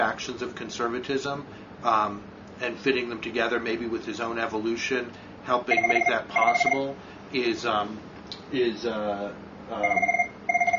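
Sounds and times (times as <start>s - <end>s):
speech: 0.0s - 10.2s
telephone ringing with warbling electronic pulses: 5.7s - 6.9s, 9.8s - 10.7s.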